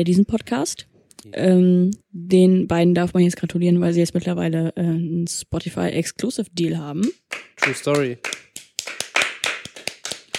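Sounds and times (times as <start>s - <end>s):
speech: 0.0s - 8.4s
hand clapping: 7.0s - 10.3s.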